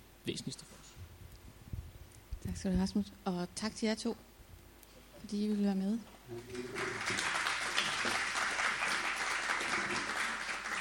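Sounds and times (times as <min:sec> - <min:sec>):
speech: 0:00.2 - 0:00.9, 0:02.4 - 0:04.3, 0:05.2 - 0:07.3
audience applause for event participants: 0:06.5 - 0:10.7.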